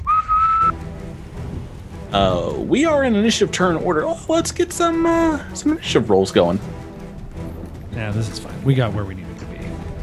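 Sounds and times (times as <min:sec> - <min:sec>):
person whistling imitating a Cheliax Marine officer's whistle: 0:00.0 - 0:00.8
speech: 0:02.1 - 0:06.8, 0:08.0 - 0:09.2.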